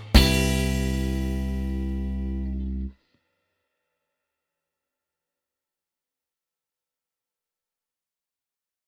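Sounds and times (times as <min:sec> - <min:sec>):
musical chord: 0:00.2 - 0:02.9.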